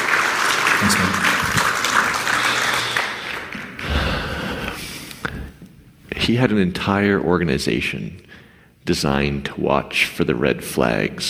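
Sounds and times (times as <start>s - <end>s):
audience applause: 0.0s - 4.7s
speech: 0.8s - 1.3s, 6.3s - 11.2s.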